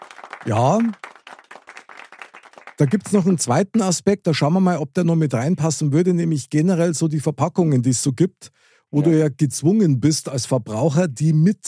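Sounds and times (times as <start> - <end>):
crisp hand claps: 0.0 - 3.2
speech: 0.4 - 1.1, 2.8 - 11.6.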